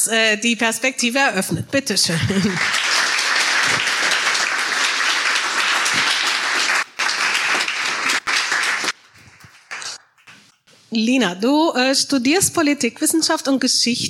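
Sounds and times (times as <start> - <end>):
speech: 0.0 - 3.0, 10.9 - 14.0
audience applause: 2.3 - 10.1.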